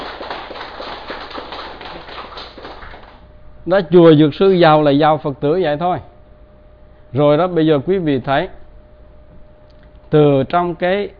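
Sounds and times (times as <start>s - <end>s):
audience applause: 0.0s - 3.2s
speech: 3.6s - 6.1s, 7.1s - 8.6s, 10.1s - 11.1s.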